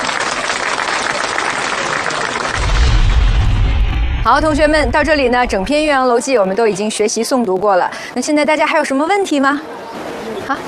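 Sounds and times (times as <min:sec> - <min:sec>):
classroom of students clapping: 0:00.0 - 0:02.6
low rumble: 0:02.6 - 0:06.3
speech: 0:04.2 - 0:09.8, 0:10.5 - 0:10.6.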